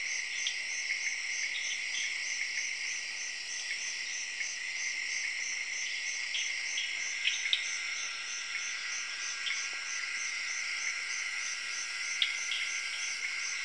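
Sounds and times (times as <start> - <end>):
crickets chirping in Zaire: 0.1 - 13.6
tree frogs calling in Zaire: 6.3 - 13.6.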